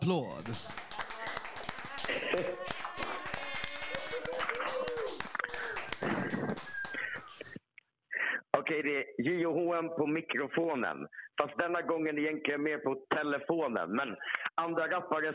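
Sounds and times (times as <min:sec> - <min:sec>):
speech: 0:00.0 - 0:00.8, 0:08.8 - 0:15.3
applause: 0:00.0 - 0:07.6
laughter: 0:00.3 - 0:07.6.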